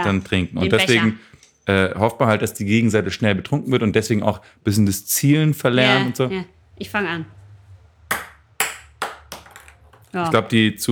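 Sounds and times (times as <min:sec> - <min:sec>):
speech: 0:00.0 - 0:07.4, 0:10.1 - 0:10.9
beer pong ball bouncing: 0:08.1 - 0:10.4.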